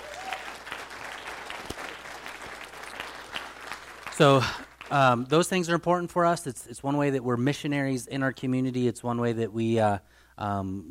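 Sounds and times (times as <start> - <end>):
round of applause for a team: 0.0 - 5.3
speech: 4.2 - 10.8.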